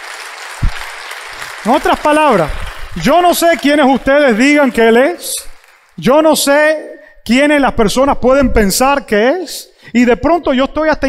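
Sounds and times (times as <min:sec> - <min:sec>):
audience applauding: 0:00.0 - 0:06.1
speech: 0:01.6 - 0:11.0.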